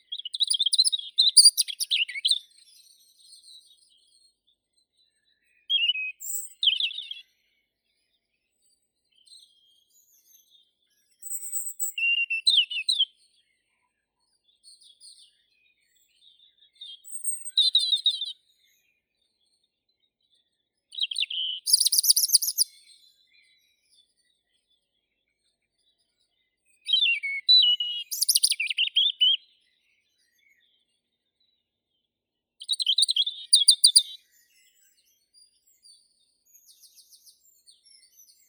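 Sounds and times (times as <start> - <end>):
European robin Erithacus rubecula singing: 0.0 - 2.9, 5.4 - 7.3, 11.0 - 13.2, 15.1 - 18.8, 20.9 - 24.1, 25.8 - 30.8, 32.6 - 35.2.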